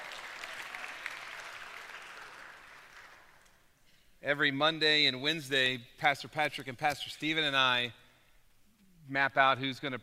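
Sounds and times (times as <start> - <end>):
audience applause: 0.0 - 3.5
speech: 4.2 - 8.0, 9.1 - 10.0.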